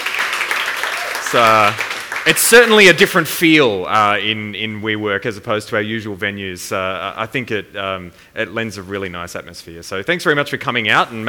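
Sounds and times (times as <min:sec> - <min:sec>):
audience applause: 0:00.0 - 0:02.9
speech: 0:01.3 - 0:11.2.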